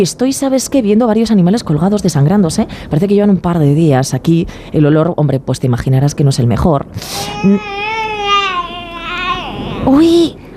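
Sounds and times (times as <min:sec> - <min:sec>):
speech: 0:00.0 - 0:07.8, 0:09.8 - 0:10.4
baby crying: 0:07.1 - 0:10.4.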